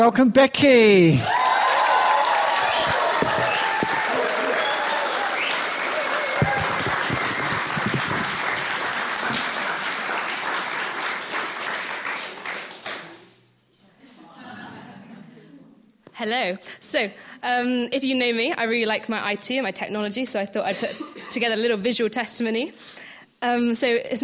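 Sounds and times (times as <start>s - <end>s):
speech: 0.0s - 1.4s, 16.3s - 24.2s
scattered cheering: 1.1s - 12.7s
audience applause: 1.2s - 13.3s
laughter: 14.0s - 15.6s.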